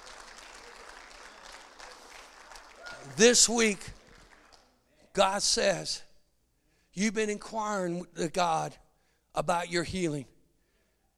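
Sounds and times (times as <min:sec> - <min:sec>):
audience clapping hands in praise: 0:00.0 - 0:04.8
speech: 0:03.1 - 0:04.0, 0:05.2 - 0:06.1, 0:07.0 - 0:08.8, 0:09.4 - 0:10.3.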